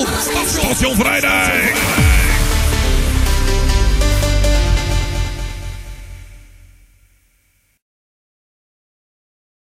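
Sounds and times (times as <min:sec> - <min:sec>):
radio station jingle: 0:00.5 - 0:07.2.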